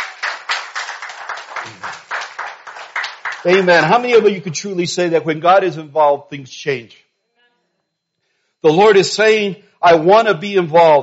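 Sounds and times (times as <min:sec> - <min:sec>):
audience clapping: 0:00.0 - 0:04.5
speech: 0:03.4 - 0:07.0, 0:08.6 - 0:11.0.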